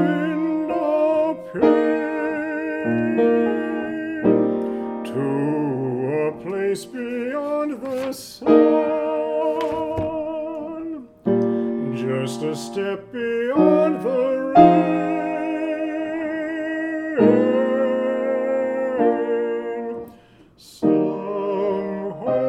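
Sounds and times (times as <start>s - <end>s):
tenor singing: 0.0s - 22.4s.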